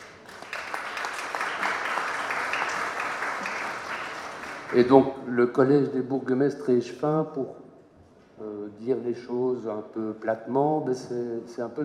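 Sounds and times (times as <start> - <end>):
audience applause: 0.0 - 5.0
speech: 4.7 - 7.7, 8.4 - 11.8.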